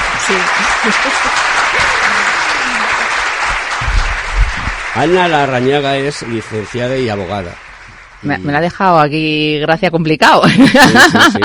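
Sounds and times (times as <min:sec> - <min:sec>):
audience applause: 0:00.0 - 0:08.7
laughter: 0:00.1 - 0:03.4, 0:10.4 - 0:11.4
speech: 0:00.3 - 0:01.6, 0:05.0 - 0:07.6, 0:08.2 - 0:11.4.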